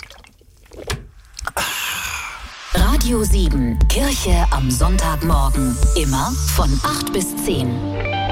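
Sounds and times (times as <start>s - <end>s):
knocks and splashes: 0.0s - 1.2s
speech: 3.0s - 8.2s.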